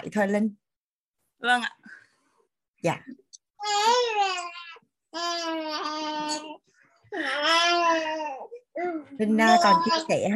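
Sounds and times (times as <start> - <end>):
speech: 0.1 - 0.6, 1.4 - 2.0, 2.8 - 4.6, 5.2 - 10.3
baby babbling and crying: 3.6 - 10.1.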